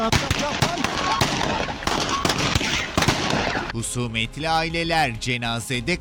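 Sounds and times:
gunfire from a cemetery clash between feuding families at a funeral in Gaziantep: 0.0s - 3.7s
speech: 3.8s - 5.9s.

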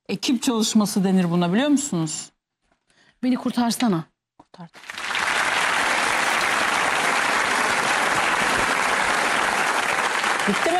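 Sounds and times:
speech: 0.1s - 2.3s, 3.2s - 5.0s, 10.5s - 10.7s
audience applause: 4.8s - 10.7s.

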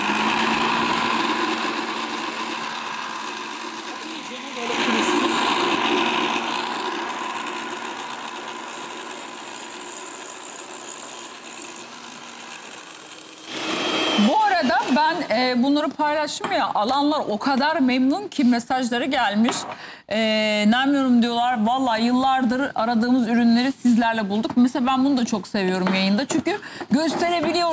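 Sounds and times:
blender running: 0.0s - 16.2s
speech: 15.4s - 27.7s.

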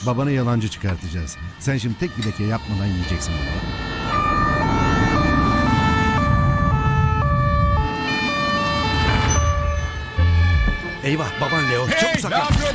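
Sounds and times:
speech: 0.0s - 4.2s, 11.0s - 12.7s
road traffic rumble: 0.0s - 12.0s
two-tone police siren: 0.0s - 12.7s.

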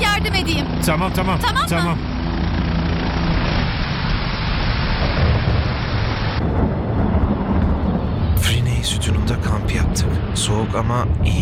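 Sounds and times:
speech: 0.2s - 2.1s, 8.9s - 11.3s
thunder rumbling: 3.2s - 11.3s
heavy rain: 3.6s - 11.3s.

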